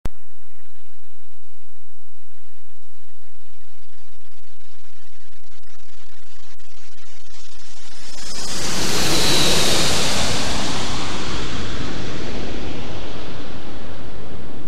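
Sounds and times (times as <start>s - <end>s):
aeroplane in surround: 7.8s - 14.6s.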